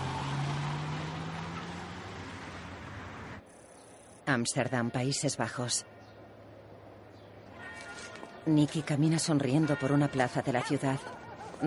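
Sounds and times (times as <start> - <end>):
car engine pulling away from a parking lot: 0.0 - 3.5
speech: 4.3 - 5.9, 8.5 - 11.6.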